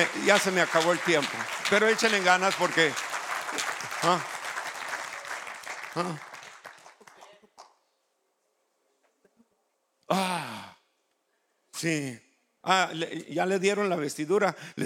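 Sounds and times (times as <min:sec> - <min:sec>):
speech: 0:00.0 - 0:04.4, 0:06.0 - 0:06.3, 0:11.8 - 0:14.8
audience applauding: 0:00.0 - 0:07.8.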